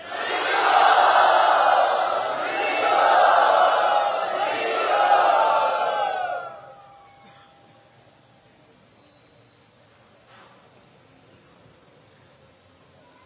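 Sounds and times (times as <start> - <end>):
crowd cheering and whooping to welcome a guest speaker in Mumbai, Maharashtra: 0.0 - 6.8.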